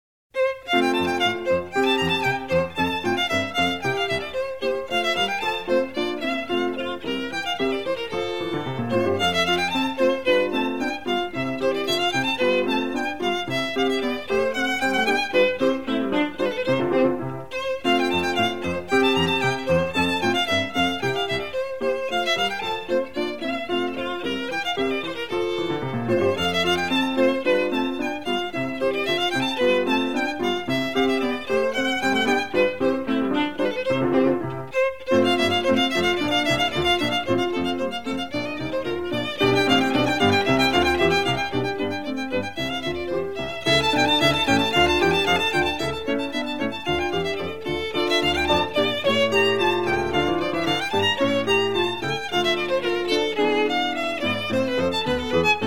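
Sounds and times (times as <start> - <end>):
violin: 0.3 - 55.6.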